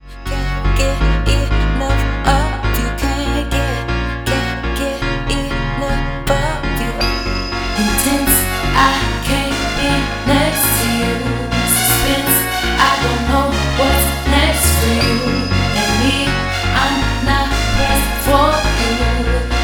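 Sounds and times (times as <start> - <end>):
vocal mix music: 0.0 - 19.6.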